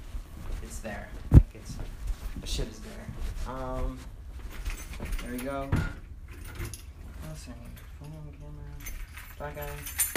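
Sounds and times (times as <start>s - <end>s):
speech: 0.8s - 4.2s, 5.0s - 6.0s, 6.6s - 10.1s
keys jangling: 4.5s - 10.1s.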